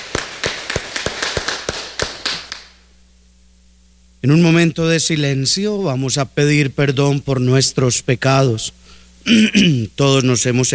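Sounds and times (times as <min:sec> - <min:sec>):
audience applause: 0:00.0 - 0:02.7
speech: 0:04.2 - 0:10.7.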